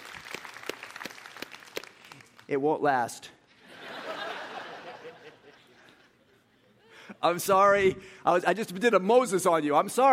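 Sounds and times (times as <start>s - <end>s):
audience clapping: 0.0s - 2.6s
speech: 2.5s - 3.4s, 7.2s - 10.1s
laughter: 3.6s - 7.1s.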